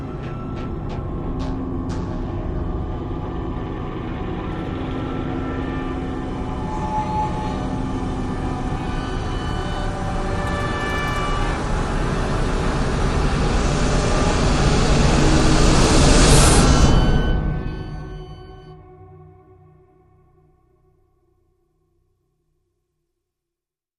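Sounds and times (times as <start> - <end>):
drones: 0.0 - 18.8.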